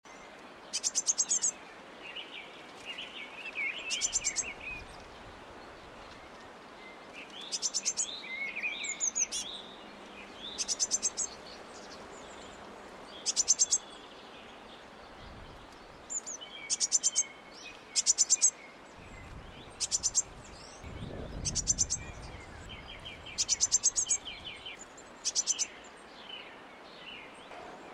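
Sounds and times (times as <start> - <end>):
background hiss: 0.1 - 27.9
small birds chattering: 0.7 - 1.6, 3.0 - 6.2, 7.2 - 27.9
Eurasian blue tit calling: 0.8 - 1.5, 3.9 - 4.5, 7.5 - 8.1, 10.6 - 11.4, 13.2 - 13.9, 16.1 - 17.2, 18.0 - 18.5, 19.8 - 20.3, 21.4 - 22.2, 22.9 - 25.7.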